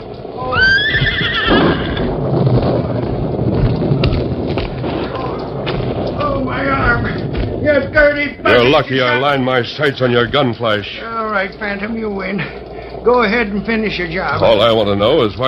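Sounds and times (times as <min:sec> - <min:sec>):
steady rumbling noise: 0:00.0 - 0:15.4
Silver, the Lone Ranger's horse, neighing: 0:00.4 - 0:02.1
speech: 0:08.0 - 0:15.4.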